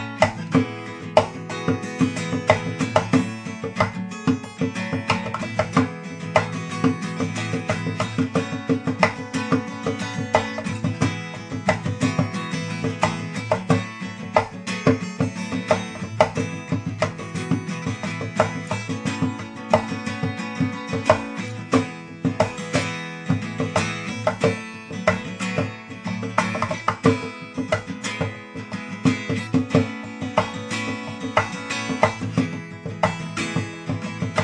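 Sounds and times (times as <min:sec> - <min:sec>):
cajon: 0:00.0 - 0:34.4.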